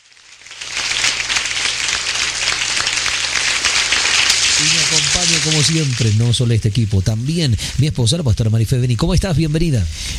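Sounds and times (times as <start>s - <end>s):
studio audience applause: 0.3s - 6.2s
speech: 4.6s - 10.1s.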